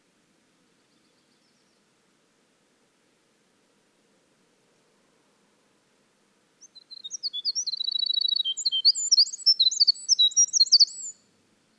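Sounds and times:
winter wren singing: 6.6 - 11.2.

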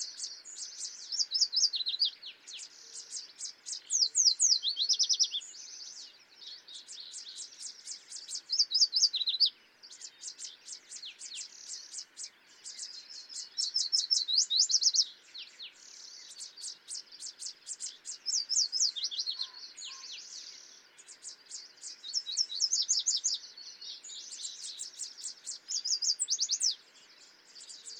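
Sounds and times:
background birdsong: 0.0 - 27.9
yellow warbler song: 0.0 - 27.9.

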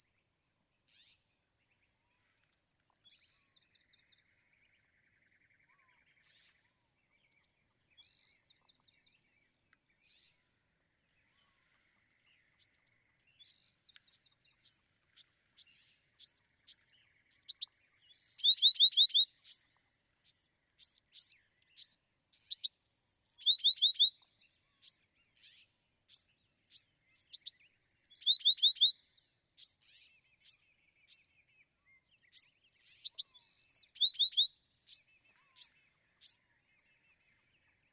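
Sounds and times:
Bewick's wren singing: 12.6 - 19.6, 20.2 - 31.4, 32.2 - 36.5.

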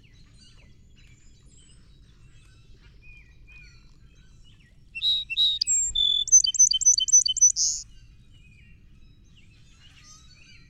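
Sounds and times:
song sparrow singing: 5.0 - 7.8.

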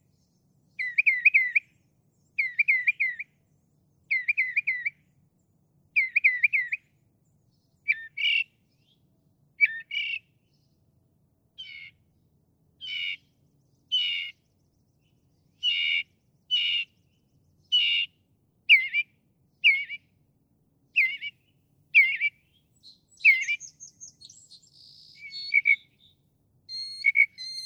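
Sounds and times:
Northern mockingbird singing: 0.7 - 5.0, 6.0 - 6.8, 7.8 - 9.0, 9.6 - 10.3, 11.6 - 12.0, 12.8 - 14.5, 15.4 - 20.1, 20.9 - 21.4, 22.0 - 27.6.

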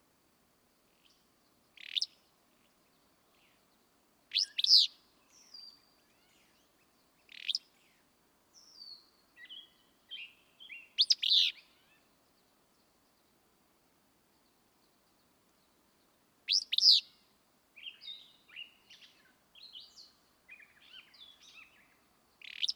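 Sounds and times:
willow flycatcher rasping song: 1.8 - 2.2, 4.3 - 8.0, 8.6 - 12.1, 16.5 - 17.2, 17.8 - 22.7.

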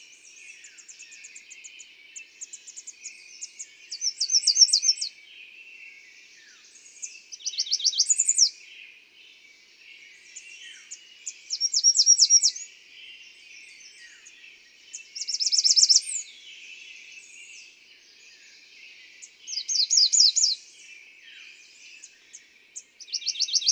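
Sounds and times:
American redstart singing: 0.0 - 23.7.

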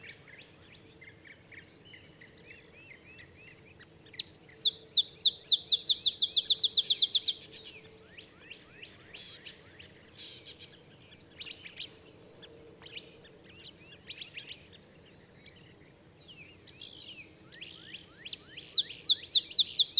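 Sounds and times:
other birds chirping: 4.1 - 7.5, 18.2 - 19.9
olive sparrow song: 4.1 - 7.6, 18.2 - 19.9.

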